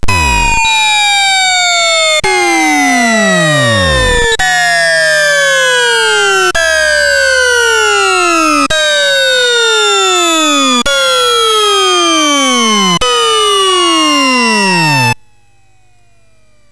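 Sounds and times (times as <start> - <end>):
hip hop on a SID MOS6581R3 sound chip: 0.0 - 15.2.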